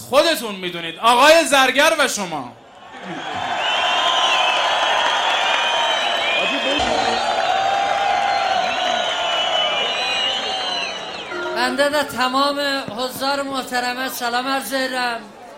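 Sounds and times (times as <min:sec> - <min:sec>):
speech: 0:00.1 - 0:03.3, 0:11.6 - 0:15.4
concert crowd applauding and cheering: 0:02.9 - 0:12.1.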